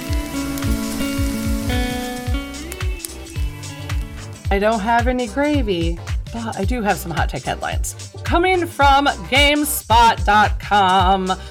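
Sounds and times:
food sizzling in a frying pan: 0.0s - 4.5s
music bed with held tone and low thumps: 0.0s - 11.4s
speech: 4.5s - 11.4s.

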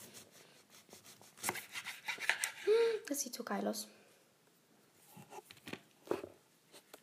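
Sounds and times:
knife cutting food into quarters: 1.0s - 2.7s
speech: 3.1s - 4.0s.

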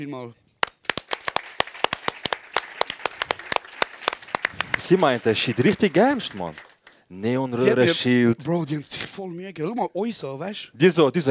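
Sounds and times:
speech: 0.0s - 0.5s, 4.8s - 11.2s
audience applause: 0.6s - 7.0s.

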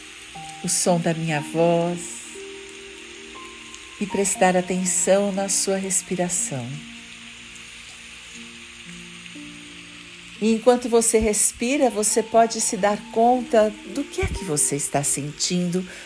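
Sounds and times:
rain falling: 0.0s - 16.0s
speech: 0.4s - 2.2s, 4.0s - 7.0s, 10.4s - 16.0s.

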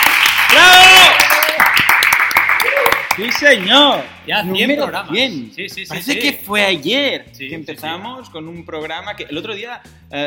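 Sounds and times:
crowd applause: 0.0s - 3.7s
person whooping: 0.5s - 1.6s, 2.6s - 3.1s
speech: 3.2s - 10.2s.

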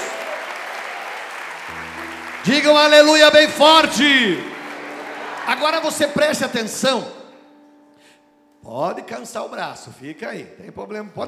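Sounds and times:
audience applauding: 0.0s - 6.8s
speech: 1.7s - 4.5s, 5.5s - 7.2s, 8.6s - 11.2s.

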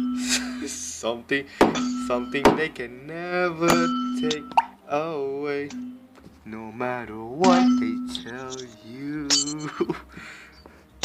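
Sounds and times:
speech: 0.7s - 10.4s
glass falling and clinking: 1.6s - 2.7s, 3.6s - 4.7s, 7.4s - 9.9s.

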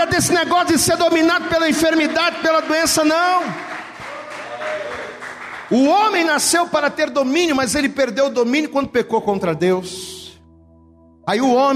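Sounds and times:
speech: 0.0s - 3.7s, 5.7s - 10.1s, 11.3s - 11.7s
audience applauding: 1.2s - 6.4s.

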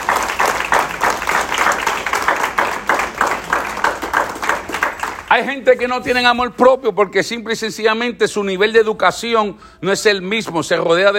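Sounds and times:
audience applauding: 0.0s - 5.5s
speech: 5.4s - 11.1s.

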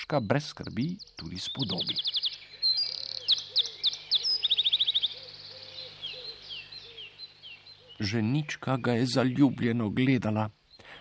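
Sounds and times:
speech: 0.1s - 2.2s, 8.0s - 10.6s
bird whistling cheerfully: 1.1s - 8.6s.

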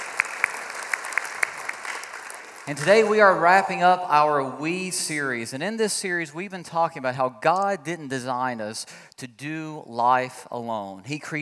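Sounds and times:
audience applause welcoming guests to a study gathering: 0.0s - 3.5s
speech: 2.7s - 11.3s.

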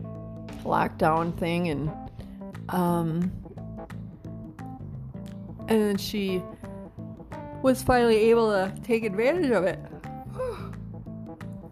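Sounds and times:
speech: 0.6s - 2.1s, 2.7s - 3.4s, 5.7s - 6.6s, 7.6s - 9.9s
person yawning: 10.3s - 10.8s.

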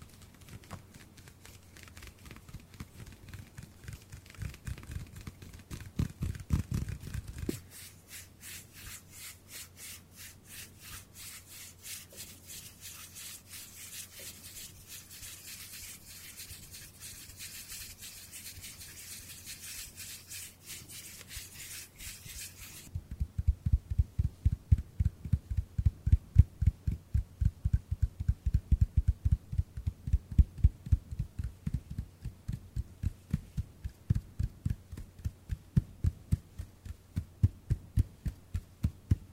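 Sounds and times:
rhythmic hand pats and thumps: 0.0s - 7.7s, 22.8s - 39.3s
palms and fingers rubbing: 0.0s - 27.5s, 28.2s - 39.3s.

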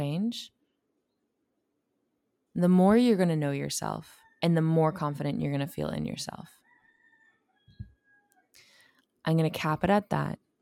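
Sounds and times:
speech: 0.0s - 0.6s, 2.6s - 6.6s, 9.2s - 10.5s
roosters crowing: 6.7s - 8.4s.

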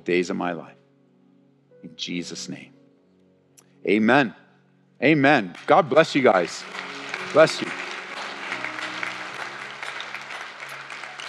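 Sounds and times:
speech: 0.0s - 0.8s, 1.8s - 2.8s, 3.8s - 4.4s, 5.0s - 7.8s
audience clapping and applauding: 5.4s - 11.2s.

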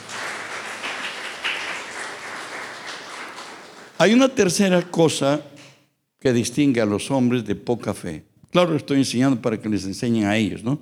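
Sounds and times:
audience applauding: 0.0s - 4.2s
speech: 4.0s - 5.5s, 6.2s - 10.8s.

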